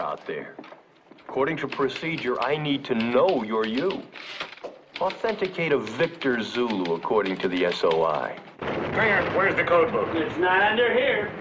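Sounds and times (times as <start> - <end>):
speech: 0.0 - 11.4
artillery shelling: 8.5 - 11.4.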